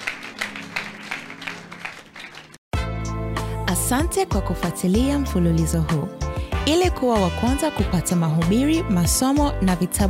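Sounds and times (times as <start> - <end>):
church congregation clapping during a sermon: 0.0 - 2.6
speech: 3.7 - 10.0.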